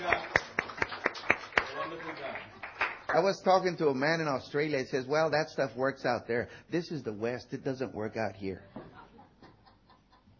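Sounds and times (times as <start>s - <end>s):
audience hand clapping: 0.0s - 3.4s
speech: 3.1s - 8.7s.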